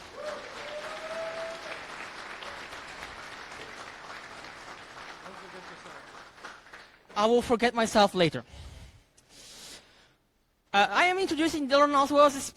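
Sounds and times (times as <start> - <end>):
conference audience applause: 0.0 - 7.1
speech: 7.2 - 8.6, 10.8 - 12.5.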